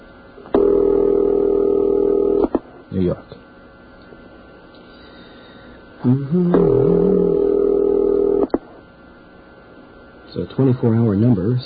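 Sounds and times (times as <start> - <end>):
telephone ringing tone on a call to Patchogue: 0.6 - 2.4, 7.0 - 8.5
speech: 3.0 - 3.4, 6.0 - 7.0, 10.4 - 11.6.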